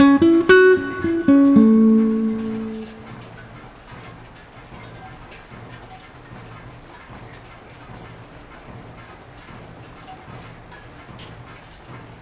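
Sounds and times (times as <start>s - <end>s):
melody: 0.0s - 3.4s.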